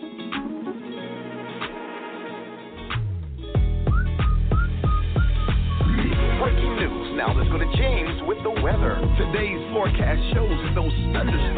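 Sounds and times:
thumping beat: 2.9s - 11.5s
song with a bright whistled melody: 3.7s - 7.3s
speech: 7.2s - 11.5s.

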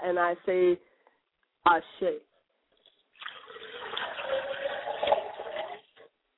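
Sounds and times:
speech: 0.1s - 0.9s, 1.6s - 2.3s
liquid libation pouring: 2.8s - 6.1s.

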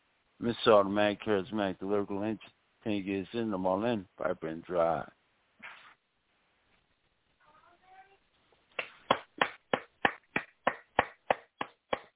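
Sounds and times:
speech: 0.4s - 5.2s
person clapping hands: 8.8s - 12.1s.

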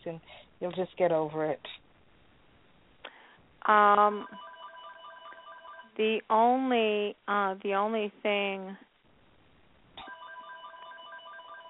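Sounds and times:
speech: 0.0s - 1.8s, 3.7s - 4.5s, 6.0s - 8.8s
telephone ringing with a faint electronic warble: 4.0s - 6.0s, 10.0s - 11.6s.

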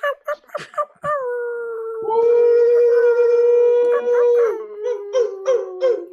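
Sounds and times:
several voices imitating wolf howls: 1.2s - 6.1s.

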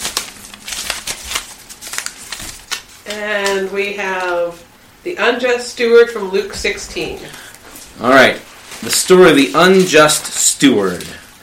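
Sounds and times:
paper slip drawn from a hat rustling: 0.0s - 4.6s, 7.1s - 11.4s
speech: 3.1s - 11.2s.

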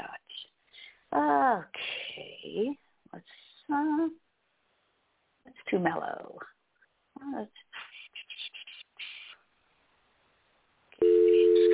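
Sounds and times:
speech: 1.1s - 4.2s, 5.7s - 6.5s, 7.2s - 7.6s
telephone ringing tone: 11.0s - 11.7s.

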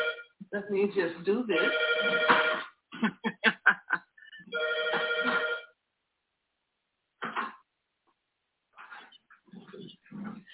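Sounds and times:
home telephone ringing with a bright electronic warble: 0.0s - 0.3s, 1.6s - 2.7s, 4.5s - 5.8s
speech: 0.5s - 3.3s
laughter: 3.0s - 4.5s.

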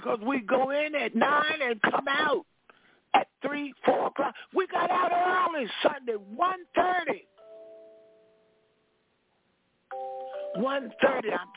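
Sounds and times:
speech: 0.0s - 2.5s, 3.1s - 7.2s, 10.0s - 11.5s
mobile phone ringing: 7.3s - 8.8s, 9.9s - 11.5s.

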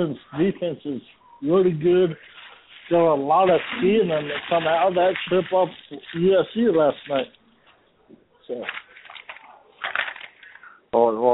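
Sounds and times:
speech: 0.0s - 7.4s, 8.5s - 8.8s, 10.9s - 11.3s
paper rattling: 2.1s - 7.4s, 8.5s - 10.8s.

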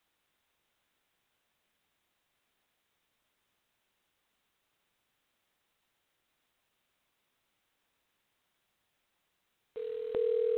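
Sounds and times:
telephone ringing tone on outgoing call: 9.8s - 10.5s.

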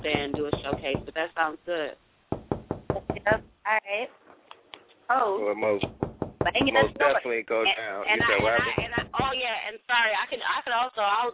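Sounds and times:
knocking raps: 0.0s - 1.5s, 2.3s - 3.6s, 5.8s - 7.1s, 8.1s - 9.6s
speech: 0.7s - 2.1s, 3.2s - 4.2s, 5.1s - 11.3s.

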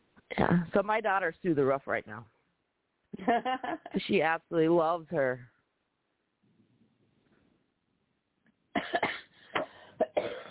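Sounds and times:
speech: 0.4s - 2.4s, 3.2s - 5.5s
person coughing: 8.8s - 10.5s.

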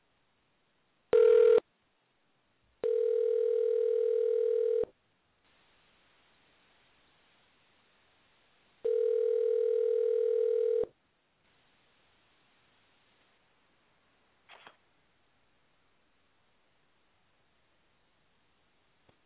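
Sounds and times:
telephone line tones while dialing an international number: 1.2s - 1.6s, 2.8s - 4.9s, 8.8s - 10.9s.

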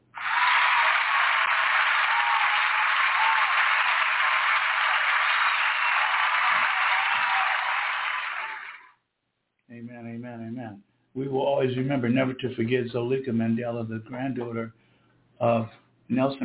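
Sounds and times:
crowd applause: 0.0s - 8.9s
speech: 11.6s - 14.8s, 15.4s - 16.4s.

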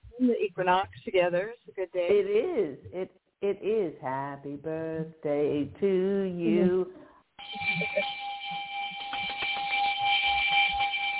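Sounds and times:
speech: 0.2s - 7.0s, 7.6s - 8.2s
birthday bell ringing: 7.4s - 11.1s.

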